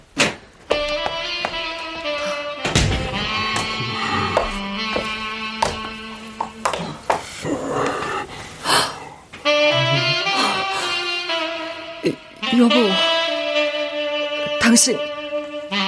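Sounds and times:
saxophone playing a slow melody: 0.7 - 7.1, 9.3 - 15.8
airy breaths: 3.7 - 4.8, 6.8 - 9.4, 10.2 - 12.0
speech: 12.6 - 13.1, 14.7 - 15.1.

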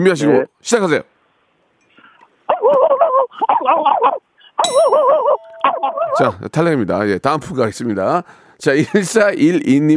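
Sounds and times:
speech: 0.0 - 1.1, 2.6 - 9.9
caller imitating dog barking: 2.5 - 6.4
metallic clang: 4.6 - 5.2.

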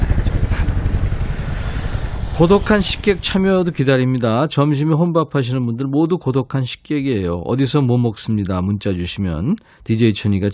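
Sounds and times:
helicopter flying in: 0.0 - 4.4
speech: 2.4 - 10.5.

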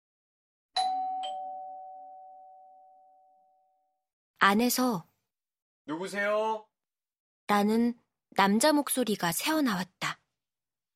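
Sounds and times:
doorbell two-note ding-dong chime: 0.8 - 3.8
speech: 4.4 - 5.1, 5.9 - 6.7, 7.5 - 10.2.

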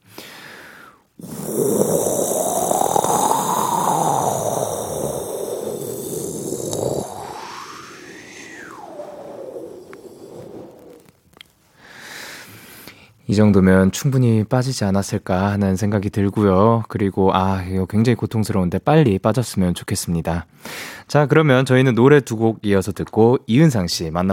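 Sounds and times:
person blowing air in breathy puffs: 0.0 - 12.9
speech: 13.3 - 24.3.

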